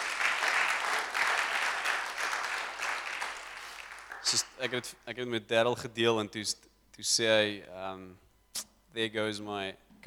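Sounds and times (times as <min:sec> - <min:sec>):
crowd clapping: 0:00.0 - 0:04.8
speech: 0:04.2 - 0:08.2, 0:08.9 - 0:09.9.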